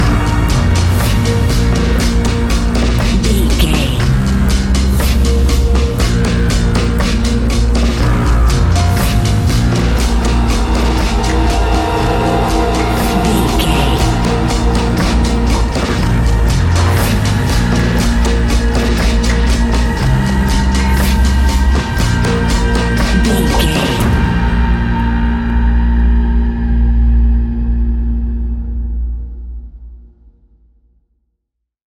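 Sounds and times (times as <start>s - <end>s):
suspenseful nightfall music: 0.0s - 30.0s.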